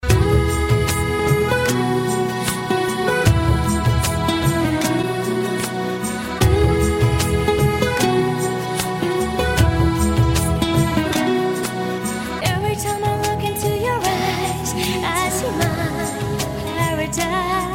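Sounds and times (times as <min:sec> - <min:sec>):
instrumental ringtone music: 0:00.0 - 0:17.6.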